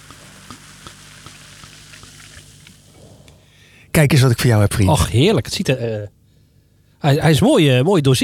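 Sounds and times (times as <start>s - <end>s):
bubbles fizzing in poured sparkling wine: 0.0s - 2.9s
speech: 4.0s - 6.2s, 7.0s - 8.2s.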